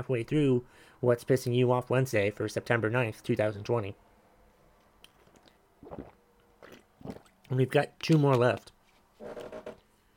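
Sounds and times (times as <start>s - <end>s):
speech: 0.0s - 4.1s, 5.9s - 6.2s, 7.0s - 9.7s
chair creaking: 9.2s - 9.8s.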